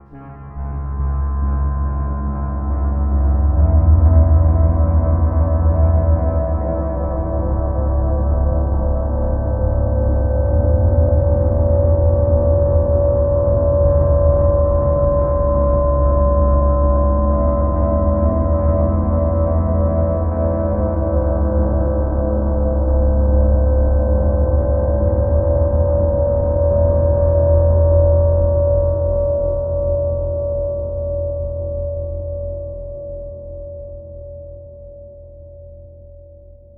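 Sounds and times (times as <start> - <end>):
creepy foreboding horror music: 0.1 - 35.3.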